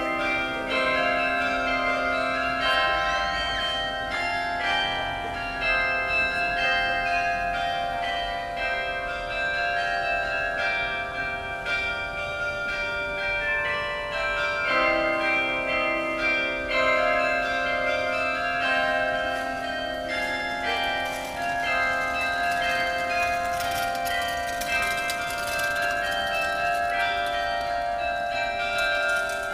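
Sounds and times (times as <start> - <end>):
carillon concert: 0.0 - 29.5.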